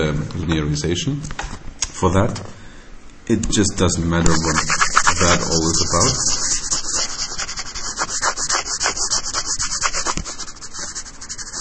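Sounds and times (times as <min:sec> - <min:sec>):
speech: 0:00.0 - 0:02.6, 0:03.3 - 0:06.4
eraser rubbing on a board: 0:04.3 - 0:11.5.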